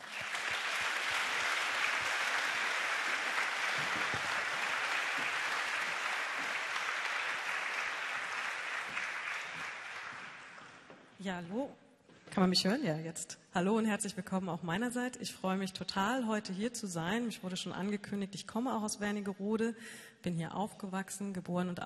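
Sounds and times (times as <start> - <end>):
audience applause: 0.0 - 10.9
speech: 11.2 - 11.8, 12.4 - 21.8.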